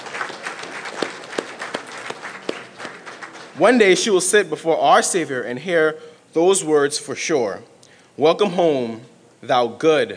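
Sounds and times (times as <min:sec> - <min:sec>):
audience clapping: 0:00.0 - 0:04.2
speech: 0:03.6 - 0:10.1.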